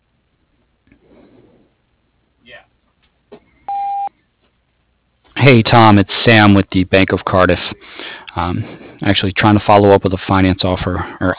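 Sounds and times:
voicemail beep tone: 3.7s - 4.1s
recorded voice speaking: 5.3s - 11.3s
speech: 5.4s - 7.8s, 8.4s - 11.3s.

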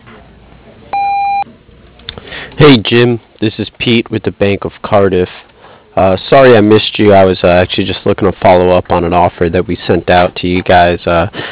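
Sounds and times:
answering machine beep before a voice message: 0.9s - 1.4s
speech: 2.6s - 11.5s.

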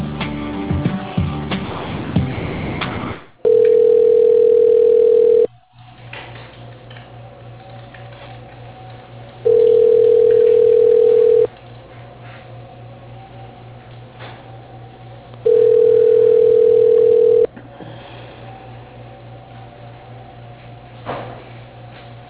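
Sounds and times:
telephone line noise with low hum: 1.9s - 22.2s
telephone line tones during call transfer to voicemail: 3.4s - 5.5s, 9.4s - 11.5s, 15.4s - 17.5s.

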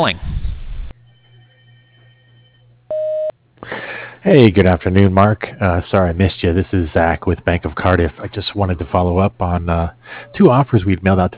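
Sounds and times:
speech: 0.0s - 0.2s, 4.2s - 11.3s
voicemail beep tone: 1.0s - 3.3s.

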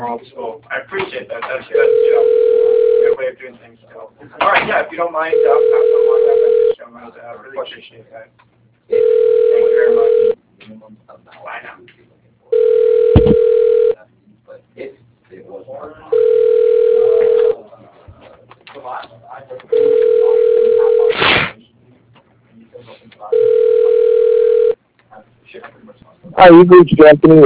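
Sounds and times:
speech: 0.0s - 2.6s, 3.3s - 9.0s, 10.7s - 12.0s, 26.4s - 27.4s
telephone ringing on the line: 1.8s - 3.2s, 5.3s - 6.8s, 8.9s - 10.4s, 12.5s - 14.0s, 16.1s - 17.6s, 19.7s - 21.1s, 23.3s - 24.8s.

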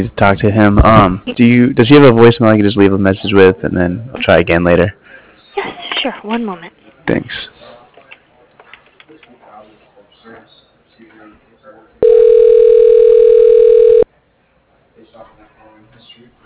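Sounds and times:
speech: 0.0s - 5.0s, 5.6s - 7.5s
electronic telephone ring tone: 12.0s - 14.1s.

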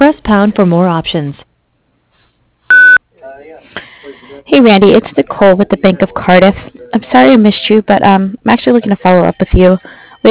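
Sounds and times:
speech: 0.0s - 1.5s, 4.4s - 10.2s
voicemail recording tone electronic beep: 2.7s - 3.0s.

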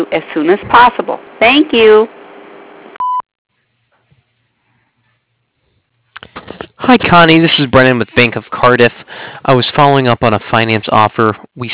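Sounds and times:
speech: 0.0s - 2.2s, 6.9s - 11.7s
voicemail recording beep: 3.0s - 3.3s.

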